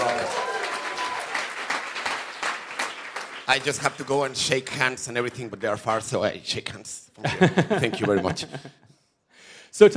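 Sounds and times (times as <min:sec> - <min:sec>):
audience applause: 0:00.0 - 0:06.0
speech: 0:03.5 - 0:08.8, 0:09.7 - 0:09.9
laughter: 0:07.2 - 0:09.0.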